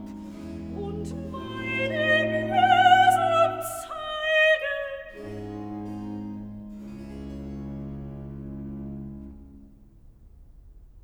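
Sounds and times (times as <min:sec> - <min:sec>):
bass and soprano recitative from a cantata: 0:00.0 - 0:06.1.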